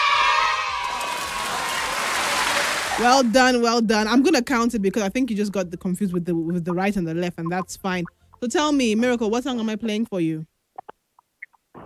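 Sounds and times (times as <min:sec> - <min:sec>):
cheering: 0:00.0 - 0:03.3
round of applause: 0:00.3 - 0:03.4
speech: 0:03.0 - 0:10.5.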